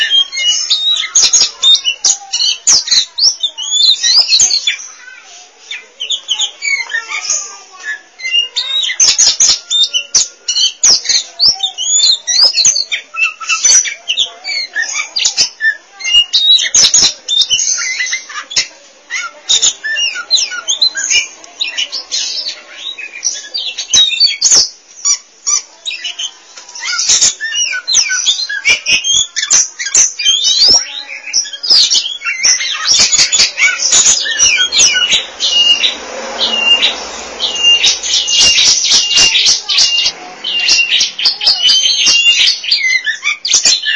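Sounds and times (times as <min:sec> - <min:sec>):
Oriental magpie-robin song: 0:00.0 - 0:43.9.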